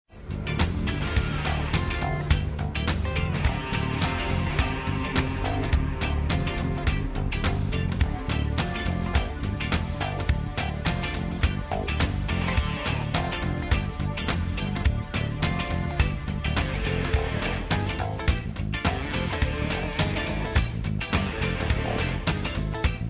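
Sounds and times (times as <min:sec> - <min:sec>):
pop rock music: 0:00.1 - 0:23.0.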